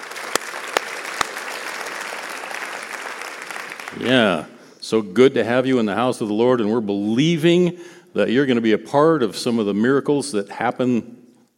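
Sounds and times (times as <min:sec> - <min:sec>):
audience applause at a church service welcoming visiting coaches: 0:00.0 - 0:04.6
speech: 0:03.9 - 0:11.2.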